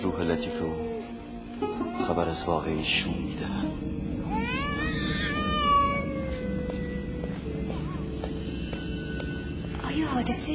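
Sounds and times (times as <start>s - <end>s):
speech: 0.0s - 0.9s, 1.6s - 4.5s, 10.2s - 10.5s
low constant rumble: 0.0s - 10.5s
baby crying in a long wail: 4.2s - 7.4s.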